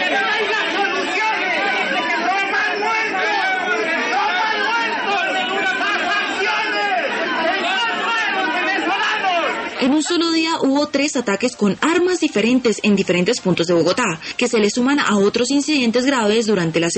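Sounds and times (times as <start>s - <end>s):
crowd shouting and protesting: 0.0s - 11.1s
speech: 9.8s - 16.9s.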